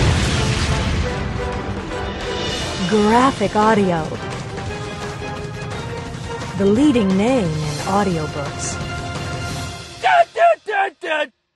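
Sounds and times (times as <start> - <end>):
missile warhead explosion in a brush thicket: 0.0 - 2.8
speech: 2.9 - 4.3, 6.6 - 8.9, 11.1 - 11.4.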